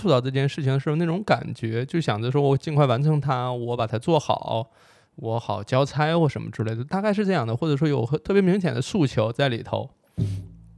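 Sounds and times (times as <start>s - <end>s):
speech: 0.0s - 10.4s
microphone stand kicked on small table: 10.2s - 10.7s.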